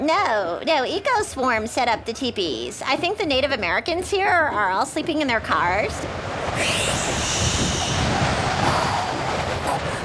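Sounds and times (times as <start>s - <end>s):
speech: 0.0s - 7.4s
strong wind blowing: 5.9s - 10.0s.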